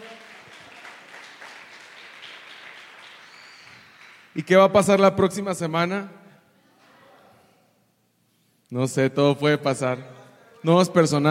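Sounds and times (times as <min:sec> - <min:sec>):
audience applause: 0:00.0 - 0:04.3
speech: 0:04.4 - 0:06.2, 0:08.7 - 0:11.2.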